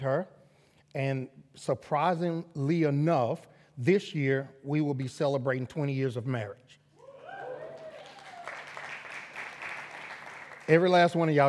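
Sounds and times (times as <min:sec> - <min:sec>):
speech: 0:00.0 - 0:06.8, 0:10.7 - 0:11.4
audience clapping: 0:07.6 - 0:11.4.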